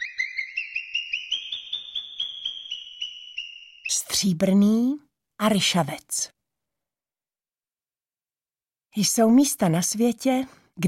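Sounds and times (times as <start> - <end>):
marmots alarm whistling: 0.0 - 4.3
speech: 4.1 - 6.4, 9.0 - 10.8.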